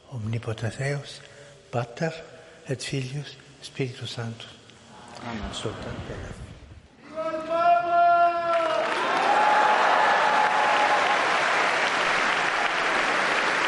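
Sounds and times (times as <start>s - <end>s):
speech: 0.1s - 4.6s, 5.2s - 6.5s
applause of the faithful for the Pope at general audience: 8.4s - 13.6s.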